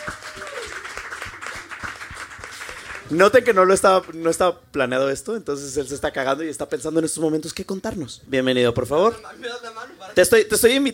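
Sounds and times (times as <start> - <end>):
audience applause: 0.0 - 3.2
speech: 3.1 - 10.9.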